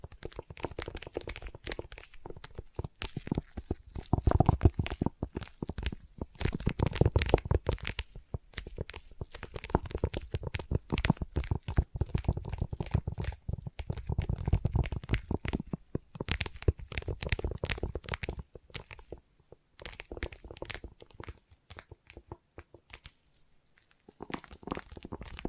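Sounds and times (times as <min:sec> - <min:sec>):
sticky tapping and tacky peeling: 0:00.0 - 0:25.4.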